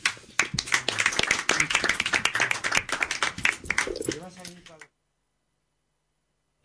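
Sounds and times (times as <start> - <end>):
audience applause: 0.0 - 4.6.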